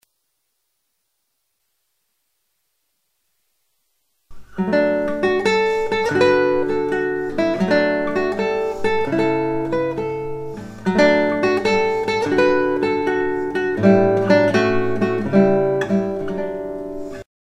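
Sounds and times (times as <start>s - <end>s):
guitar: 4.3s - 17.3s.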